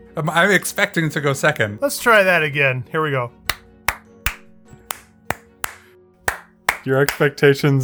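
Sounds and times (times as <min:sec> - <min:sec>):
speech: 0:00.2 - 0:03.4, 0:06.8 - 0:07.8
hand claps for audio sync: 0:03.5 - 0:07.4.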